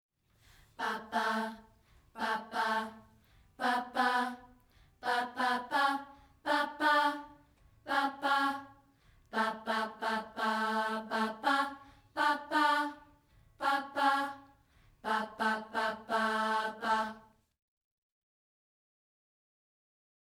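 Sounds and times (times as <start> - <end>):
birthday song in a lower key: 0.4 - 17.4.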